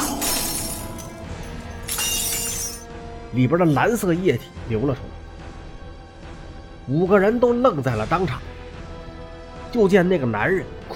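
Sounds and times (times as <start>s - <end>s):
glass bottle shattering on a table corner: 0.0s - 2.9s
speech: 3.3s - 5.2s, 6.9s - 8.5s, 9.7s - 10.8s.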